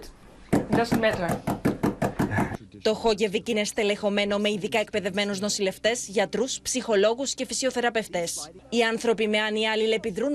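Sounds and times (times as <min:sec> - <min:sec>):
woman striking her hand on the counter at a dementia care village: 0:00.5 - 0:02.6
speech: 0:00.8 - 0:01.6, 0:02.3 - 0:10.3.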